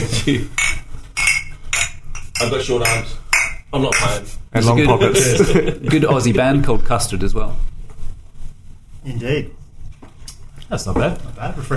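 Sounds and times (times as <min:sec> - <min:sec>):
speech: 0:00.2 - 0:00.6, 0:02.4 - 0:07.7, 0:09.0 - 0:09.6, 0:10.7 - 0:11.7
glasses clinking in a toast: 0:00.6 - 0:04.2
laughter: 0:04.8 - 0:06.2.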